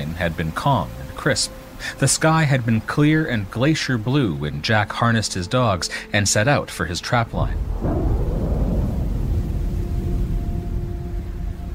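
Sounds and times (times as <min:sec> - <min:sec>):
speech: 0:00.2 - 0:08.2
eastern wind roaring across the barren tundra: 0:07.4 - 0:11.7
thunderclap: 0:07.5 - 0:11.1.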